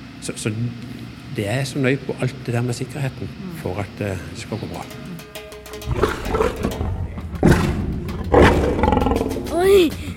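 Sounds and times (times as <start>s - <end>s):
speech: 0.2s - 5.1s, 5.8s - 6.8s
lion roaring: 5.9s - 9.5s.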